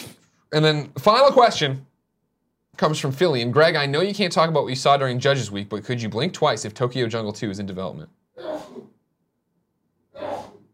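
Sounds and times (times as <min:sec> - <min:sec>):
speech: 0:00.5 - 0:01.9, 0:02.8 - 0:08.2
sneeze: 0:08.4 - 0:09.0, 0:10.2 - 0:10.7.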